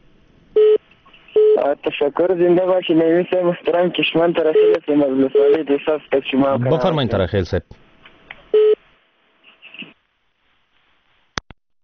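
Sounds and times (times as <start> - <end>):
telephone busy tone as a radio call-in line disconnects: 0.6 - 0.8, 8.6 - 8.8
speech: 1.6 - 7.8.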